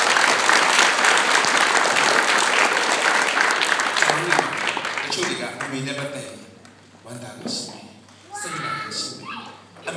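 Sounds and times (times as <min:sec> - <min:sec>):
audience applause: 0:00.0 - 0:06.2
speech: 0:05.4 - 0:06.5, 0:07.1 - 0:09.1.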